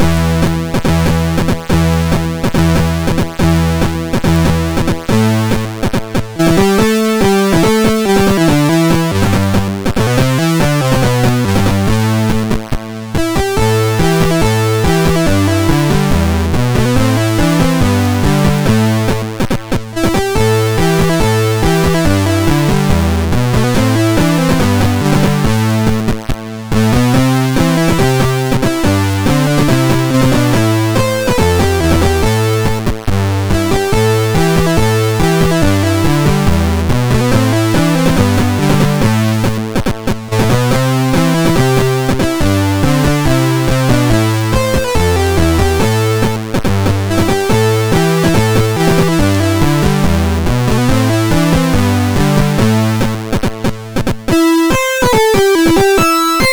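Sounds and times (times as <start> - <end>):
chiptune song remix on MOS6581R2 SID chip: 0.0 - 56.5.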